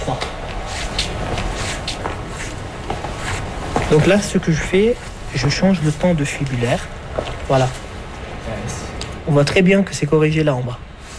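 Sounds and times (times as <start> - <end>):
footsteps of a person walking at an at-home pace: 0.0 - 8.0
steady broadband rustle: 0.1 - 8.3
speech: 3.9 - 7.8, 9.3 - 10.9.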